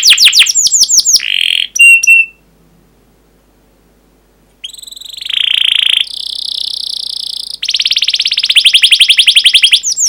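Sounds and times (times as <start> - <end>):
canary song: 0.0 - 2.4, 4.6 - 10.0.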